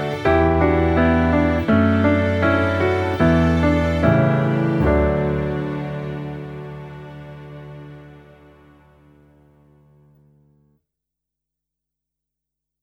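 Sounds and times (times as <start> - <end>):
instrumental backing track: 0.0 - 9.4.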